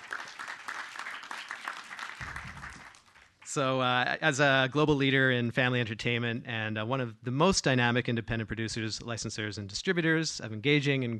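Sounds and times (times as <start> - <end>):
audience applause: 0.0 - 3.3
speech: 3.6 - 11.1.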